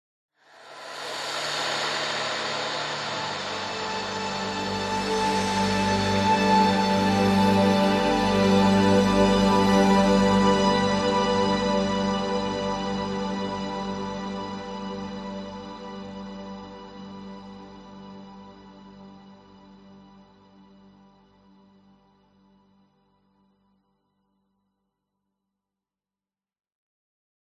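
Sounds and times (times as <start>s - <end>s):
warm glowing cinematic musical swell: 0.5s - 16.3s.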